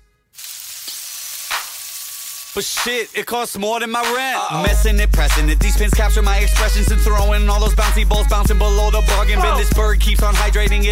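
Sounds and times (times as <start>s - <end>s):
rain stick being shaken: 0.4s - 3.3s
speech: 2.6s - 10.8s.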